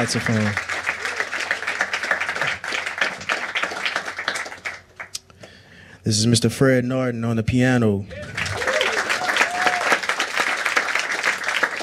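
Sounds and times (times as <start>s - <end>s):
speech: 0.0s - 0.8s, 6.1s - 8.4s
audience applause: 0.0s - 5.1s, 8.1s - 11.8s.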